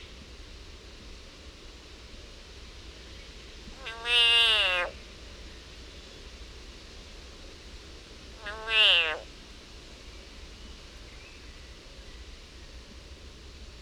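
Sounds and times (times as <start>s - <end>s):
frog screaming in agony: 3.8s - 4.9s, 8.4s - 9.2s.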